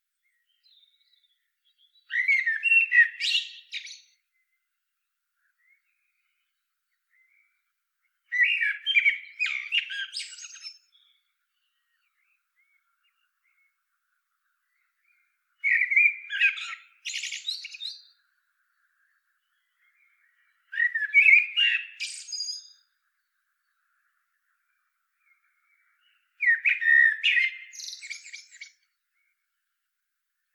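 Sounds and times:
Eurasian blackbird song: 0.0 - 30.5.

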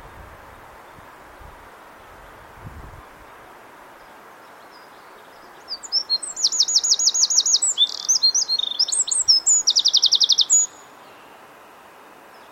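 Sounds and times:
Eurasian wren singing: 4.4 - 11.8.

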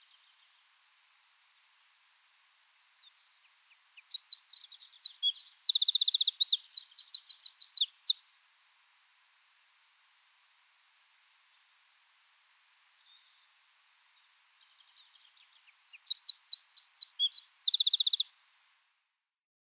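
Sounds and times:
Eurasian wren singing: 3.1 - 8.2, 14.6 - 18.3.

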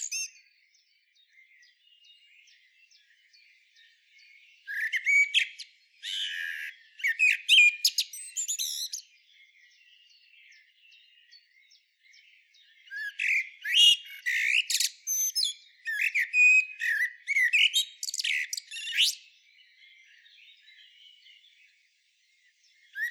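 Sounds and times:
common blackbird twittering: 0.0 - 0.5, 4.5 - 21.4.

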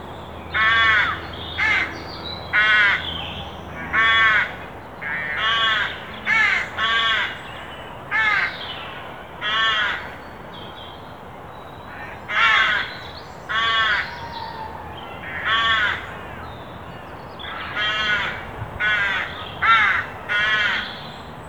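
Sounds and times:
carrion crow cawing: 0.6 - 3.1, 3.9 - 7.4, 8.1 - 8.6, 9.4 - 10.1, 11.9 - 12.9, 13.5 - 14.6, 15.2 - 16.4, 17.5 - 20.9.

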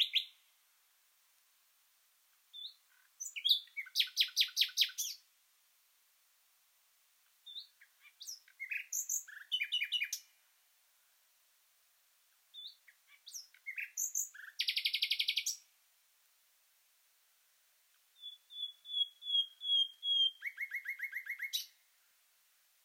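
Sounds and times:
common nightingale singing: 0.0 - 0.5, 2.4 - 5.3, 7.2 - 10.4, 12.3 - 15.7, 17.9 - 22.0.

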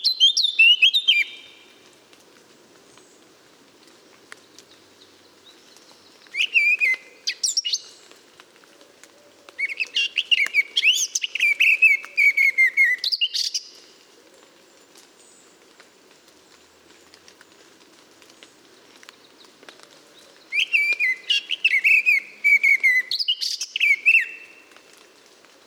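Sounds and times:
Eurasian blackcap singing: 0.0 - 1.5, 6.3 - 7.9, 9.6 - 13.8, 20.5 - 24.5.

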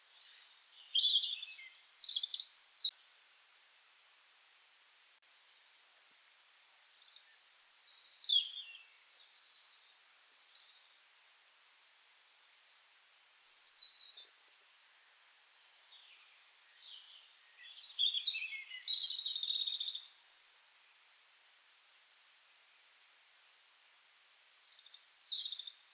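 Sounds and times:
European robin song: 0.0 - 3.0, 7.0 - 11.0, 12.9 - 14.3, 15.6 - 20.9, 24.7 - 25.9.

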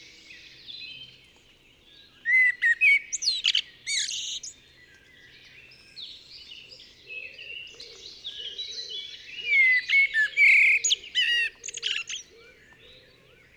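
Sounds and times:
Eurasian blackbird song: 0.0 - 13.5.

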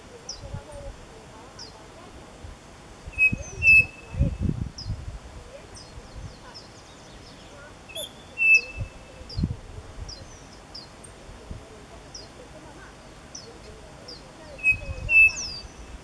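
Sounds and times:
bird calls with flat whistles and high thin chirps: 3.1 - 4.9, 5.8 - 9.5, 14.5 - 15.9.

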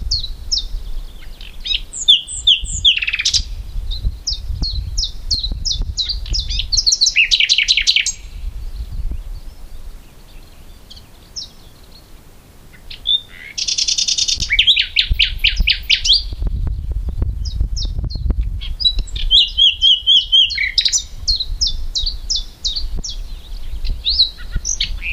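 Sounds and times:
common nightingale singing: 0.0 - 25.1.

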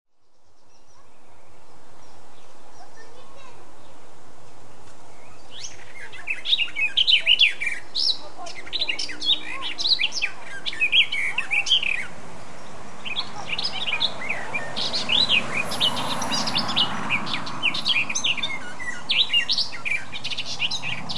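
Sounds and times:
Eurasian blackcap Sylvia atricapilla singing: 5.2 - 21.1.

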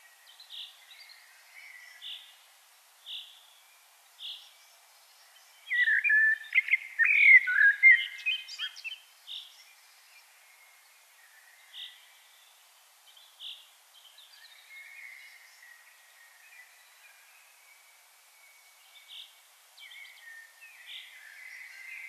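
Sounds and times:
common blackbird song: 0.0 - 22.0.

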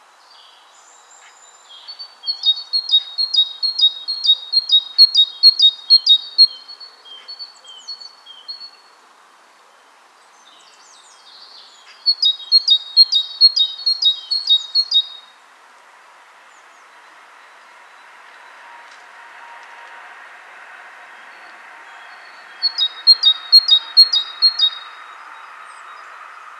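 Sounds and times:
faint hiss: 0.0 - 26.5
great tit calling: 1.2 - 8.7, 11.3 - 15.3, 22.2 - 25.1.

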